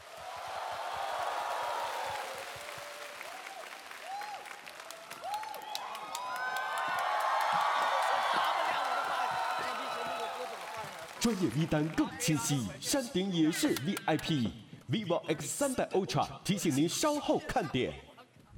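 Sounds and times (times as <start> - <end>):
audience applause: 0.0 - 12.6
speech: 11.2 - 18.1.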